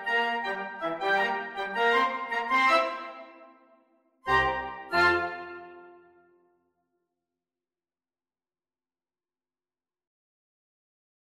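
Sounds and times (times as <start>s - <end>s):
wind quintet playing salsa: 0.0s - 3.3s, 4.3s - 5.7s.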